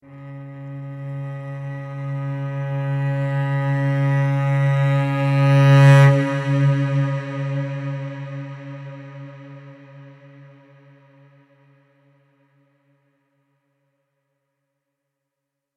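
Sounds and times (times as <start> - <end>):
cello: 0.0 - 11.3.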